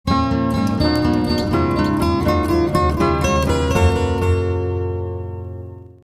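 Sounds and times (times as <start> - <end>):
TV ident music: 0.5 - 5.6.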